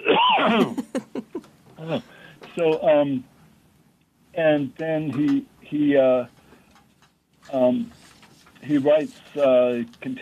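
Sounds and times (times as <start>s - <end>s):
person coughing: 0.0s - 1.1s
speech: 0.4s - 0.9s, 1.9s - 3.3s, 4.4s - 6.4s, 7.5s - 8.0s, 8.6s - 10.2s
laughter: 0.4s - 1.5s.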